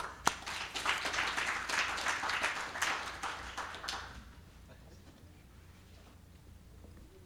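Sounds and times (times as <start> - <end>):
audience applause: 0.0 - 4.4.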